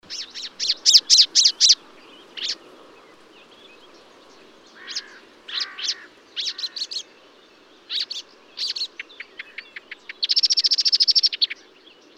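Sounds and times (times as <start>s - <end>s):
marsh warbler singing at Bonnevaux in early morning: 0.0s - 12.1s.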